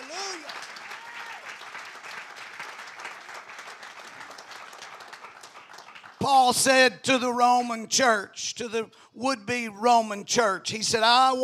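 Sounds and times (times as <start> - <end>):
crowd clapping: 0.0 - 7.0
speech: 6.2 - 11.4.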